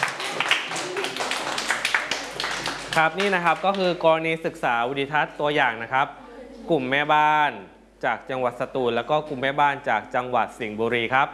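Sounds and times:
students in a classroom clapping for classmates: 0.0s - 4.0s
speech: 3.0s - 11.3s.

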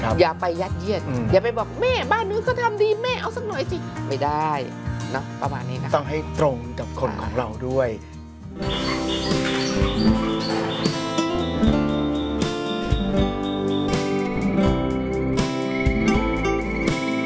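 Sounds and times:
speech: 0.1s - 10.2s
Java sparrows chirping: 8.5s - 17.2s
steady tonal background: 8.5s - 17.2s.

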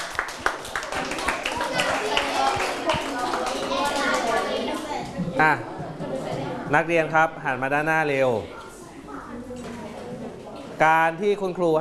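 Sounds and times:
classroom of students clapping: 0.0s - 5.0s
children's voices chattering: 0.4s - 11.7s
speech: 5.4s - 5.8s, 6.7s - 8.6s, 10.8s - 11.7s.

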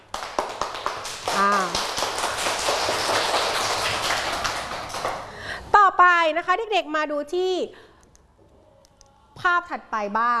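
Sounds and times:
classroom children clapping: 0.0s - 5.4s
speech: 6.2s - 7.9s, 9.4s - 10.3s.

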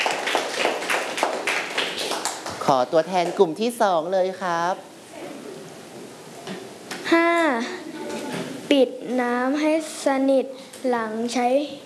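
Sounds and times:
classroom of students clapping for a classmate: 0.0s - 2.7s
speech: 2.7s - 4.9s, 8.7s - 11.8s.

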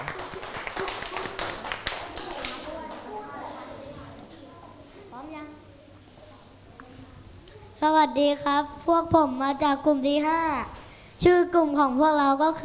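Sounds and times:
room full of children clapping: 0.0s - 3.1s
faint murmuring and shuffling: 0.0s - 7.8s
child's voice: 2.3s - 12.6s
speech: 7.8s - 12.6s.

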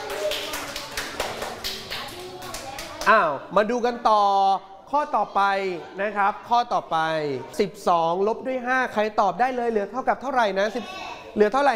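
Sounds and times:
group of children clapping: 0.0s - 3.2s
speech: 3.1s - 11.7s.

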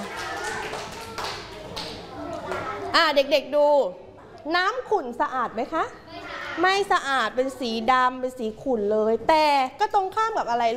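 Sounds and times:
children clapping hands: 0.0s - 2.8s
speech: 3.0s - 6.0s, 6.6s - 10.7s.

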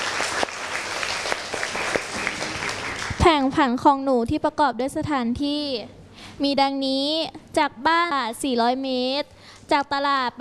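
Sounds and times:
classroom applause encouraging a student: 0.0s - 3.3s
speech: 3.2s - 10.4s.

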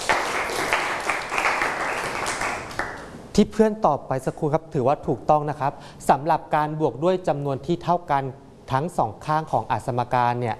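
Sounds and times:
classmates applauding: 0.0s - 3.1s
speech: 3.4s - 10.5s.

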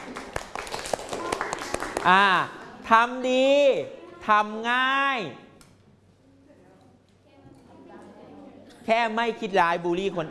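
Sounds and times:
applause: 0.0s - 2.4s
speech: 2.0s - 5.5s, 8.8s - 10.2s.

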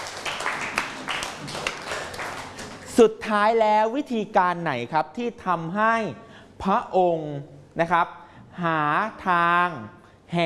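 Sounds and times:
many hands clapping for a friend: 0.0s - 3.0s
speech: 3.0s - 10.4s.

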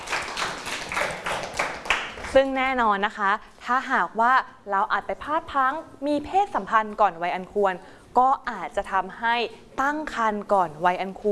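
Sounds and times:
classmates clapping for a student: 0.0s - 2.4s
speech: 2.3s - 11.2s.

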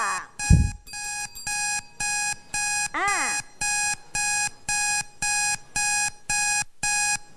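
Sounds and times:
time-up alarm electronic beeps: 0.4s - 7.3s
brief low thump: 0.5s - 0.8s.

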